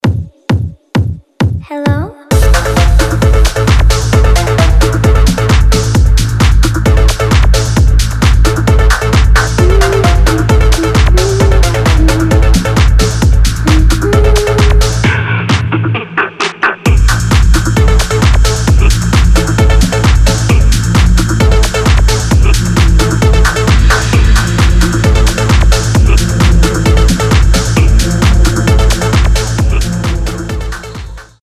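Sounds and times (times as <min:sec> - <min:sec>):
techno music: 0:01.9 - 0:31.4.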